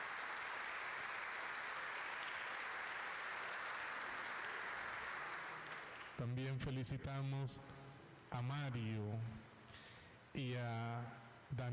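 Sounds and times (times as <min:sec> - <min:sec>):
audience applause: 0:00.0 - 0:06.2
speech: 0:06.2 - 0:09.5, 0:10.4 - 0:11.7.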